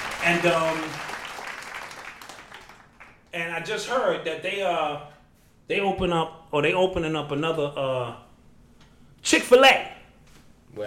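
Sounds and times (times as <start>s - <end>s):
audience clapping: 0.0s - 3.3s
speech: 0.2s - 1.1s, 3.3s - 5.1s, 5.7s - 8.2s, 9.2s - 10.0s.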